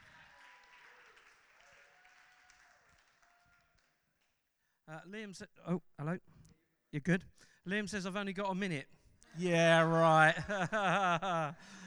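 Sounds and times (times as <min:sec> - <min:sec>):
audience applause: 0:00.0 - 0:04.0
speech: 0:04.9 - 0:06.3, 0:06.9 - 0:11.8
laughter: 0:09.3 - 0:11.8.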